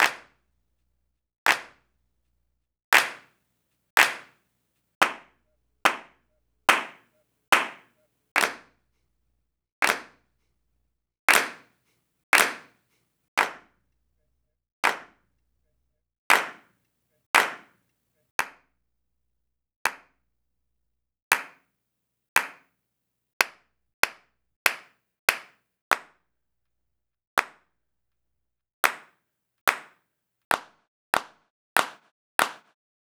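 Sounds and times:
sampled hand claps on a Roland MV8800: 0:00.0 - 0:00.4, 0:01.5 - 0:01.8, 0:02.9 - 0:03.4, 0:04.0 - 0:04.4, 0:05.0 - 0:08.8, 0:09.8 - 0:10.2, 0:11.3 - 0:13.8, 0:14.8 - 0:15.2, 0:16.3 - 0:16.8, 0:17.4 - 0:18.7, 0:19.8 - 0:20.2, 0:21.3 - 0:21.7, 0:22.4 - 0:22.7, 0:23.4 - 0:26.3, 0:27.4 - 0:27.7, 0:28.8 - 0:32.8.

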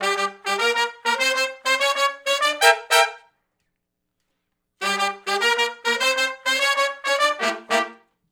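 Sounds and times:
R&B horn riff in G minor, unison to harmony: 0:00.0 - 0:03.3, 0:04.8 - 0:08.0.

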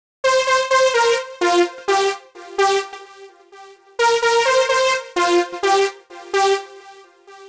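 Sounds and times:
synth music: 0:00.2 - 0:07.4.

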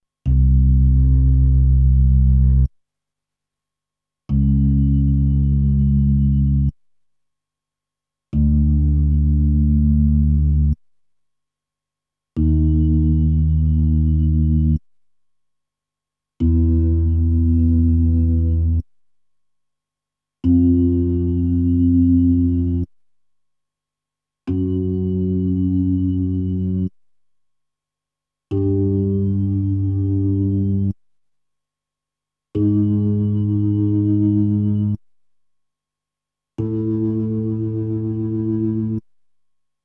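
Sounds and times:
Hammond B3 organ: 0:00.3 - 0:02.7, 0:04.3 - 0:06.7, 0:08.4 - 0:10.8, 0:12.4 - 0:14.8, 0:16.4 - 0:18.8, 0:20.4 - 0:22.9, 0:24.5 - 0:27.0, 0:28.5 - 0:31.0, 0:32.6 - 0:35.0, 0:36.6 - 0:39.0.

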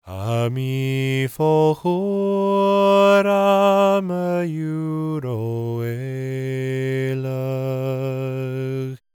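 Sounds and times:
Gaelic singing voices: 0:00.0 - 0:09.0.

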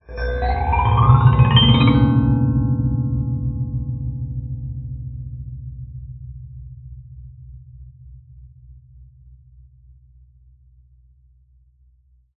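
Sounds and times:
glissando: 0:00.0 - 0:04.4.

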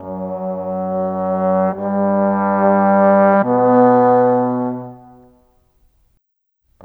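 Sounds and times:
cinematic trombones: 0:00.0 - 0:05.3.

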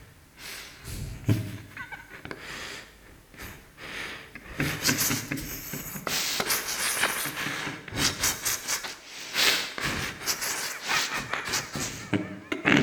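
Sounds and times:
scratched laughing: 0:00.9 - 0:02.4, 0:04.3 - 0:12.8.

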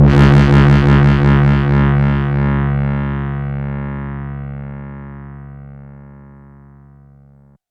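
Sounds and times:
heavy bass one-shot: 0:00.0 - 0:05.6.

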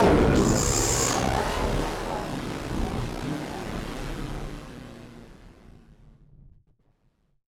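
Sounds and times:
malfunctioning synth: 0:00.0 - 0:05.0.

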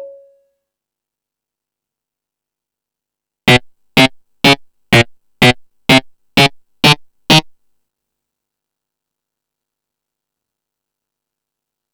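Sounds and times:
EMU Pro-Cussion percussion: 0:03.5 - 0:07.5.

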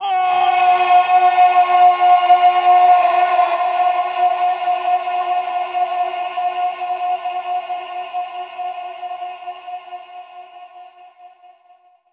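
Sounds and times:
person shouting with cavernous echo: 0:00.0 - 0:06.2.

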